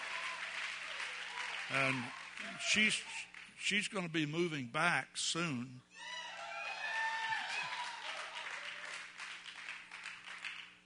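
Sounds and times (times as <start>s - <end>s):
audience clapping: 0.0s - 3.6s, 7.0s - 10.8s
speech: 1.7s - 6.2s.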